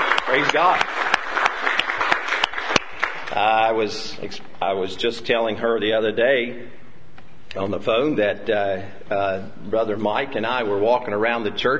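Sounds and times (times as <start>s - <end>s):
audience clapping in praise: 0.0s - 3.9s
speech: 0.3s - 1.0s, 3.4s - 6.8s, 7.6s - 11.7s.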